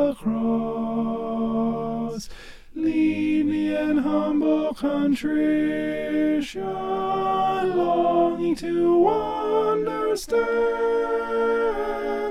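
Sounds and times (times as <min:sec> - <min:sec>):
alto voice singing: 0:00.0 - 0:12.2.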